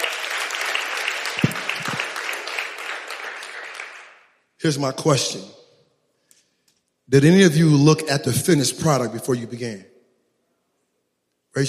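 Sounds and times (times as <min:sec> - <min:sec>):
audience applause: 0:00.0 - 0:04.2
speech: 0:04.6 - 0:05.6, 0:07.1 - 0:09.9.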